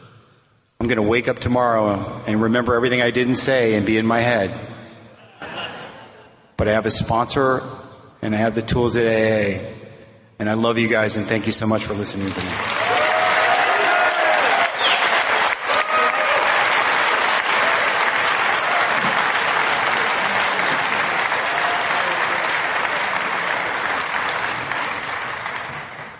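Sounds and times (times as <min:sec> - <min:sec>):
speech: 0:00.8 - 0:04.8, 0:06.6 - 0:09.8, 0:10.4 - 0:12.7
laughter: 0:05.2 - 0:06.4
audience applause: 0:12.2 - 0:26.1.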